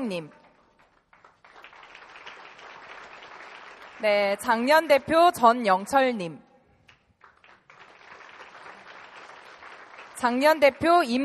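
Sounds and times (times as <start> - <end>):
speech: 0.0 - 0.4, 4.0 - 6.5, 10.2 - 11.2
audience applause: 0.7 - 4.0, 7.2 - 10.3.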